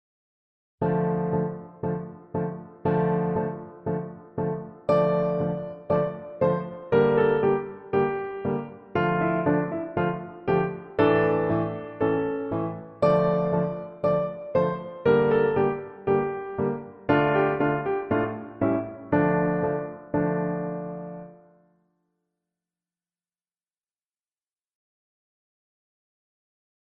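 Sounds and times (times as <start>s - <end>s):
accompaniment music: 0.9s - 21.4s.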